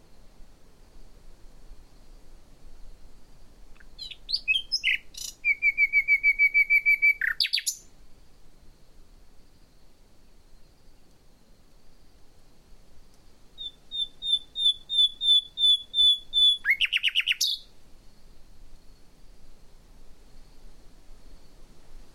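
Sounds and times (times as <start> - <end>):
common nightingale song: 0.0 - 22.1.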